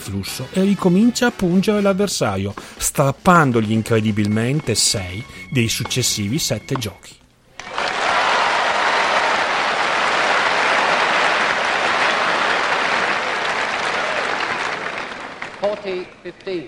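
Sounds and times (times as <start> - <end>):
speech: 0.0 - 7.2, 16.3 - 16.6
tennis crowd applause: 7.6 - 15.8.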